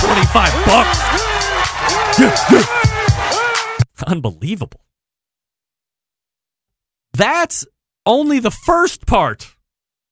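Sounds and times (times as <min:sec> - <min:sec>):
speech: 0:00.3 - 0:01.3, 0:02.2 - 0:03.0, 0:04.0 - 0:04.9, 0:07.2 - 0:09.6
crowd murmuring: 0:00.8 - 0:03.7
man screaming: 0:00.8 - 0:03.8.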